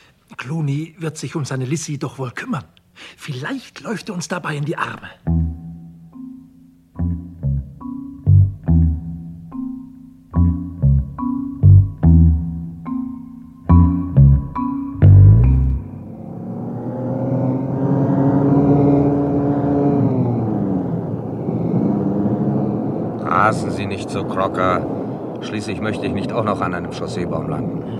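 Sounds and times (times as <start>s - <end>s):
speech: 0.3s - 5.4s, 24.2s - 27.9s
punchy staccato music chords: 5.2s - 15.9s
car engine rumbling while driving on a country road: 14.1s - 27.8s.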